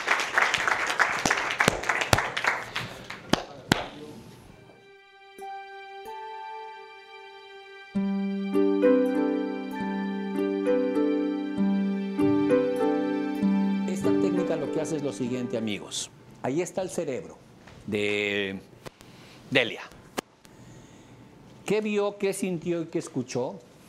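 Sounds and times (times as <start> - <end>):
audience applause: 0.0 - 4.0
sustained melodic music: 4.7 - 16.1
speech: 15.2 - 18.7, 19.5 - 19.9, 21.7 - 23.7.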